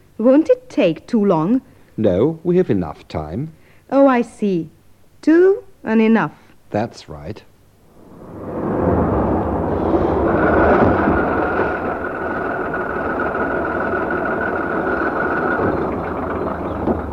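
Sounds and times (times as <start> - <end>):
speech: 0.2 - 7.5
heavy bus engine pulling away: 8.0 - 17.1.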